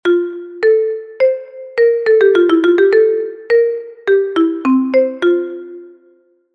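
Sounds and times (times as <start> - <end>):
marimba: 0.0 - 6.0.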